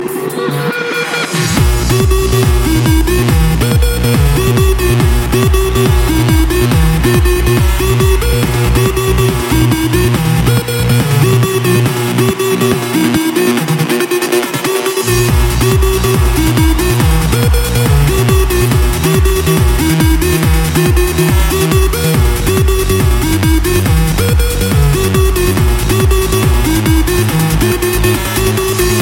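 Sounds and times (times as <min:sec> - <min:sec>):
trance music: 0:00.0 - 0:29.0.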